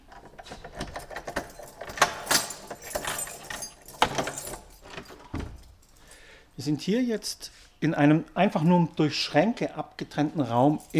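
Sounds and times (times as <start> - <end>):
keys jangling: 0.0 - 6.4, 10.6 - 10.9
speech: 6.6 - 10.9.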